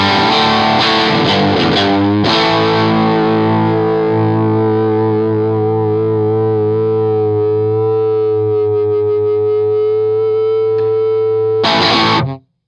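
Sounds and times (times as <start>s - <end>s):
electric guitar bridge pickup through amp: 0.0s - 12.6s.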